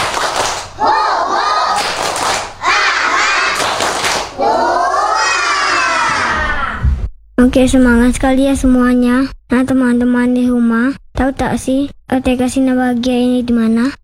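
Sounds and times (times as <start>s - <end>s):
children's sharp hand claps: 0.0s - 4.6s
group of children chanting in unison: 0.0s - 6.9s
speech: 7.4s - 14.0s.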